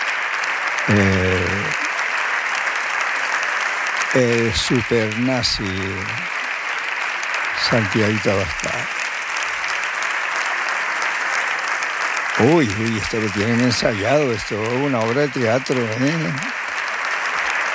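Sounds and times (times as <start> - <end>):
parliamentary chamber applause: 0.0 - 17.7
speech: 0.8 - 1.8, 4.1 - 6.4, 7.6 - 9.0, 12.4 - 16.6
laughter: 0.9 - 1.8, 4.2 - 6.2, 7.6 - 8.8, 12.4 - 16.5.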